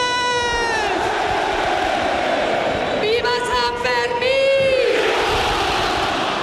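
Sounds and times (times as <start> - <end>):
huge festival crowd roaring a traditional opening shout: 0.0 - 6.4.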